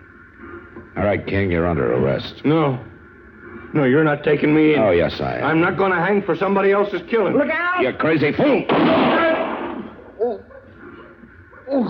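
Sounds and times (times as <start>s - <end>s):
speech: 1.0s - 2.9s, 3.7s - 9.1s
gunshot in a radio western drama: 8.7s - 10.0s.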